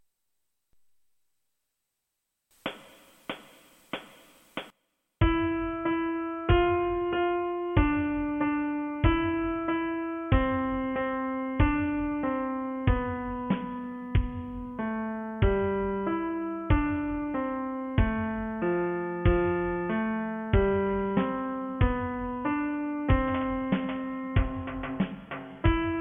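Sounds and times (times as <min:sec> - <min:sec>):
piano: 0:05.2 - 0:26.0.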